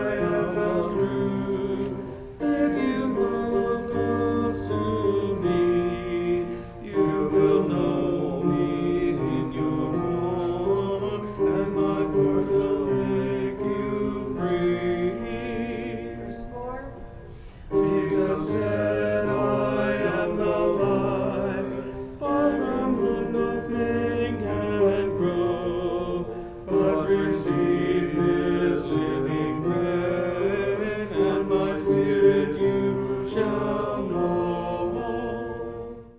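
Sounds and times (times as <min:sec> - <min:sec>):
bass and tenor voices singing: 0:00.0 - 0:36.1.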